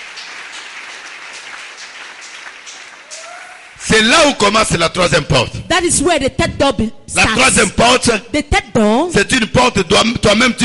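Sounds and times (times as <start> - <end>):
audience clapping loudly: 0.0 - 3.8
speech: 3.9 - 10.6.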